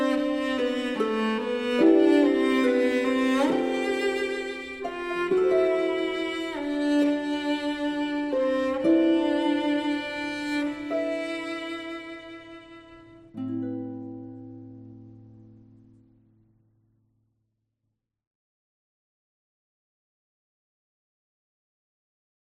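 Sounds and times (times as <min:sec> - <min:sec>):
cello: 0:00.0 - 0:15.8
harp: 0:00.0 - 0:16.3.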